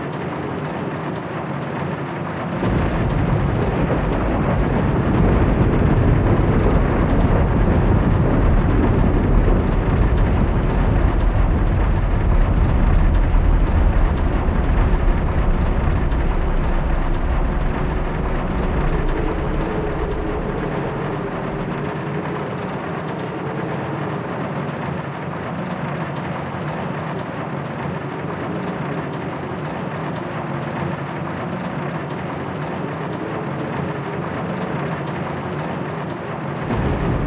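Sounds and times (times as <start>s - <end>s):
galleon interior ambience: 0.0s - 37.2s.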